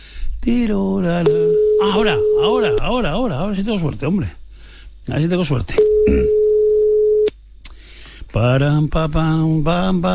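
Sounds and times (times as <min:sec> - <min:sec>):
speech: 0:00.4 - 0:04.4, 0:05.0 - 0:06.4, 0:08.4 - 0:10.1
telephone line beeping oddly: 0:01.3 - 0:03.0, 0:05.8 - 0:07.3.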